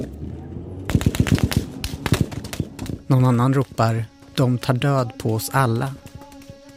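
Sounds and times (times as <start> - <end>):
low rumbling background: 0.0 - 4.2
automatic gunfire: 0.9 - 3.0
speech: 3.1 - 6.1.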